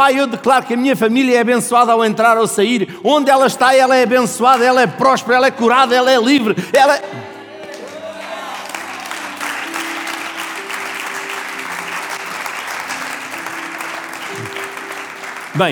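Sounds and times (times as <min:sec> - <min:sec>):
speech: 0:00.0 - 0:07.3, 0:15.6 - 0:15.7
faint held low musical tones: 0:05.5 - 0:15.7
audience applause: 0:07.5 - 0:15.7.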